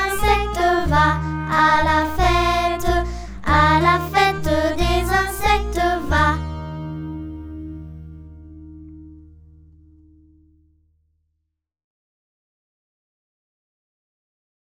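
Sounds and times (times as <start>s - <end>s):
song: 0.0s - 9.6s.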